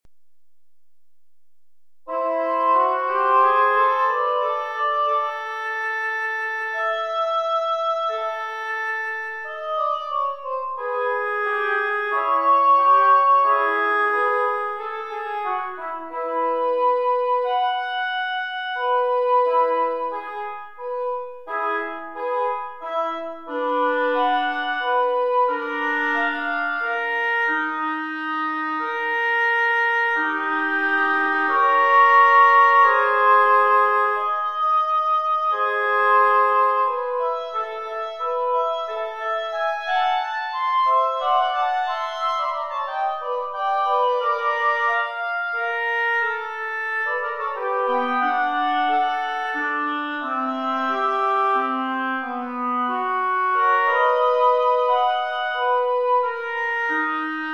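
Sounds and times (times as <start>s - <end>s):
etude for two oboes: 2.1s - 57.5s.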